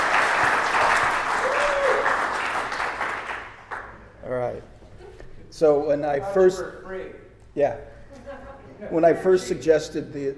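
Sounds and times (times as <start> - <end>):
audience applause: 0.0 - 3.9
speech: 5.6 - 7.9, 8.8 - 10.3.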